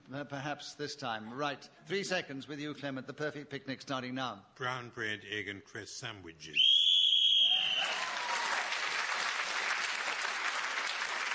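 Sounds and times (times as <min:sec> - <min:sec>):
speech: 0:00.1 - 0:06.8
game show whistle ending a turn: 0:06.6 - 0:08.1
audience applause: 0:07.5 - 0:11.3.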